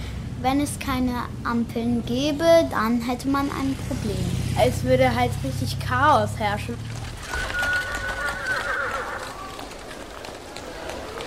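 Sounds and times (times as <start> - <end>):
traffic-like clatter: 0.0 - 11.2
speech: 0.4 - 7.0
horse whinnying on a busy old street: 7.0 - 11.2.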